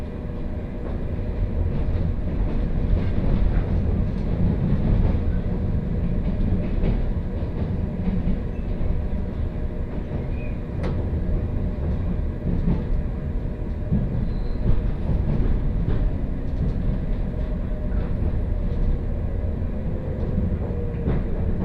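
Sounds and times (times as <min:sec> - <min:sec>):
Kosei Line train running: 0:00.0 - 0:21.6.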